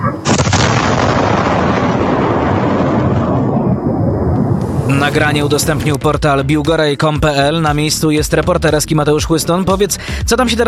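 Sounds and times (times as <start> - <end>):
cruise missile impact explosion recorded by surveillance camera: 0.2 - 6.0
speech: 5.1 - 10.6.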